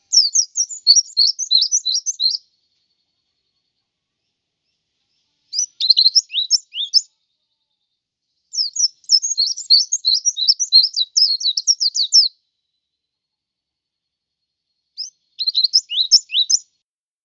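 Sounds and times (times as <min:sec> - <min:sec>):
white-eye twittering song: 0:00.0 - 0:02.5, 0:05.5 - 0:07.1, 0:08.5 - 0:12.4, 0:15.0 - 0:16.6.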